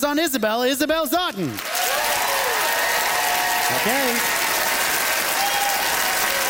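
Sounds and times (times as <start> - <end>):
speech: 0.0 - 1.8, 3.7 - 4.4
audience applause voting for a debater: 1.5 - 6.4.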